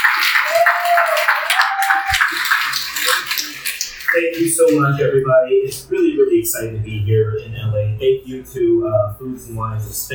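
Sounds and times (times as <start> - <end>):
audience applause: 0.0 - 4.8
speech: 1.0 - 10.1.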